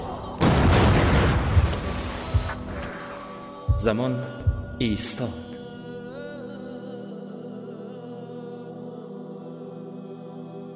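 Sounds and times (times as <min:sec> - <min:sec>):
rumbling echo: 0:00.0 - 0:03.1
gunshot blast: 0:00.4 - 0:03.0
speech: 0:03.8 - 0:05.4.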